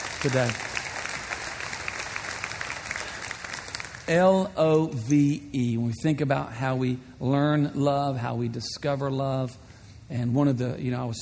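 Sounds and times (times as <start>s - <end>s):
crowd clapping hands: 0.0s - 4.5s
speech: 0.2s - 0.7s, 4.1s - 11.2s.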